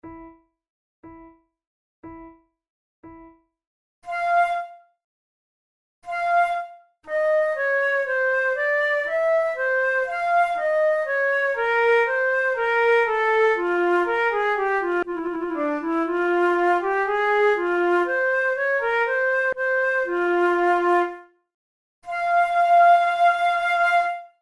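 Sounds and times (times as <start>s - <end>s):
flute prelude: 4.0s - 4.9s, 6.0s - 21.4s, 22.0s - 24.3s.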